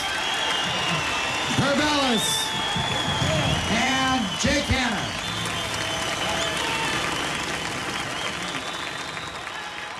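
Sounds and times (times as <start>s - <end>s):
audience applause at Concord Jazz Festival: 0.0s - 9.9s.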